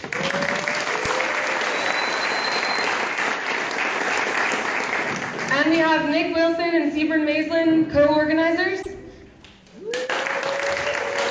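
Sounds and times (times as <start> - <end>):
audience clapping: 0.0 - 5.8, 9.4 - 11.2
speech: 5.7 - 8.9.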